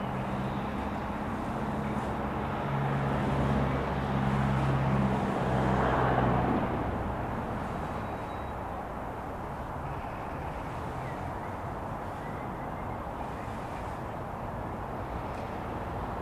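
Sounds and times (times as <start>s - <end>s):
suburban light traffic: 0.0s - 16.2s
suburban street ambience: 0.0s - 16.2s.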